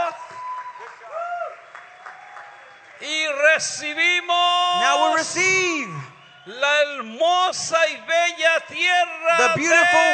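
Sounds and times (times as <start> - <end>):
audience applause at a ceremony honoring Mexico: 0.0 - 5.2
speech: 3.0 - 10.1.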